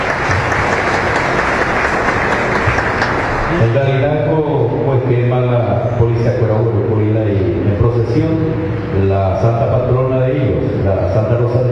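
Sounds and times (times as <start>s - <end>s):
audience applause: 0.0s - 3.8s
speech: 3.7s - 11.7s.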